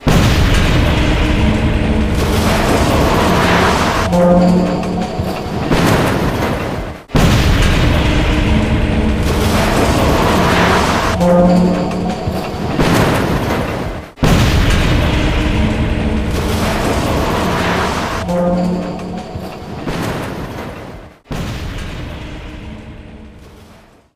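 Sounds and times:
crane collapsing: 0.0 - 24.0.

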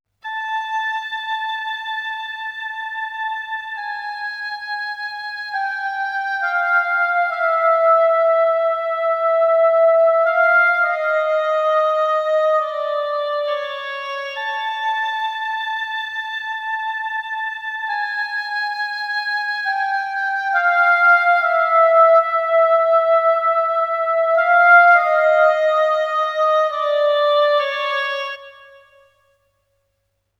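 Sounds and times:
oboe melody: 0.2 - 29.3.

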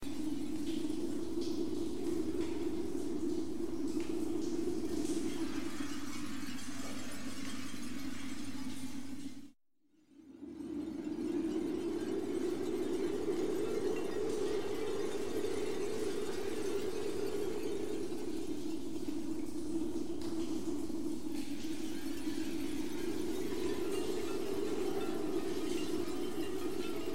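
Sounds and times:
crystal ambience: 0.0 - 9.5, 10.2 - 27.1.

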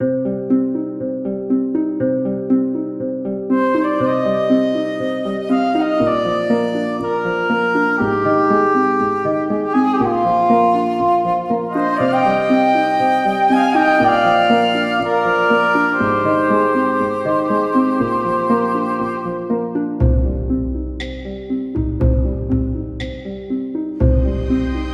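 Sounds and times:
RPG fantasy game music: 0.0 - 24.9.

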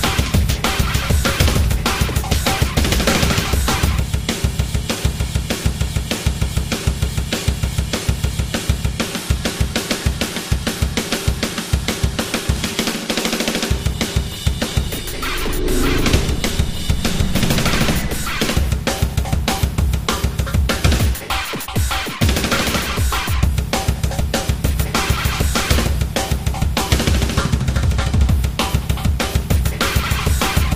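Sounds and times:
drums: 0.0 - 30.7
sound effects: 14.4 - 19.0.

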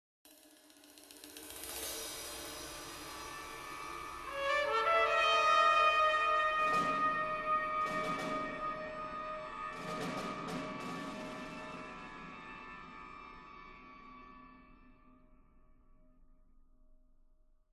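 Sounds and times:
ambient music: 2.0 - 15.8.

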